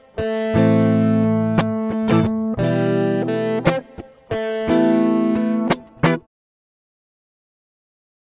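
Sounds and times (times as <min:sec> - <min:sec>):
blues guitar riff: 0:00.0 - 0:06.3.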